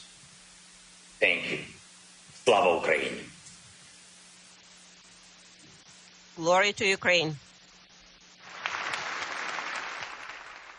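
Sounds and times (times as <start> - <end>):
speech: 1.2 - 1.7, 2.5 - 3.3, 6.4 - 7.4
audience applause: 8.4 - 10.7.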